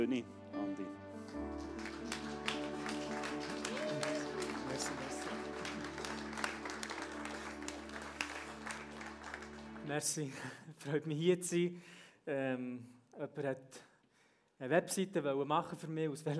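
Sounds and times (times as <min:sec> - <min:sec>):
speech: 0:00.0 - 0:01.8, 0:04.7 - 0:05.4, 0:09.9 - 0:13.9, 0:14.6 - 0:16.3
audience applause: 0:01.1 - 0:10.3
laughter: 0:02.1 - 0:08.5.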